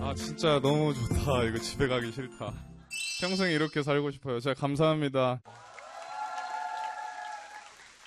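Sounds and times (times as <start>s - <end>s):
speech: 0.1s - 5.6s
audience applause at a birthday celebration: 5.5s - 8.0s.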